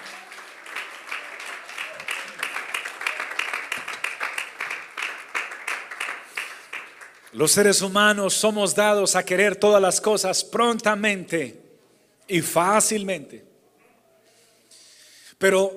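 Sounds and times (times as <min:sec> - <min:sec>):
audience applause: 0:00.0 - 0:07.4
speech: 0:07.4 - 0:11.6, 0:12.3 - 0:13.5, 0:15.4 - 0:15.7.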